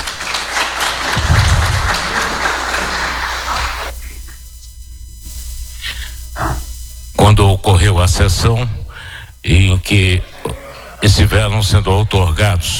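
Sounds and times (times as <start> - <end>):
audience applause: 0.0 - 3.9
laughter: 0.0 - 4.4, 9.6 - 12.0
speech: 7.8 - 8.8, 9.4 - 12.7.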